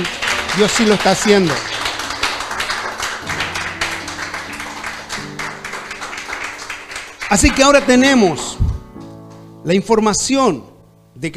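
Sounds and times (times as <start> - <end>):
speech: 0.0 - 1.7, 7.3 - 8.5, 9.6 - 11.3
audience applause: 0.0 - 8.6
low organ or keyboard chords: 0.0 - 11.3.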